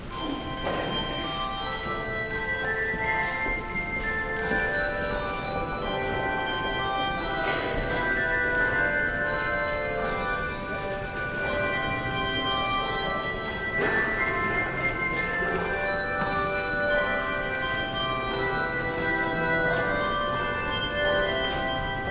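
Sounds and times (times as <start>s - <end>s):
handbells: 0.0s - 22.0s.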